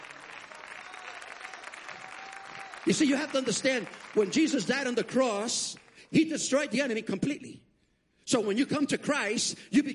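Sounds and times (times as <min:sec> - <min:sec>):
audience clapping: 0:00.0 - 0:06.6
speech: 0:02.8 - 0:07.7, 0:08.3 - 0:09.9.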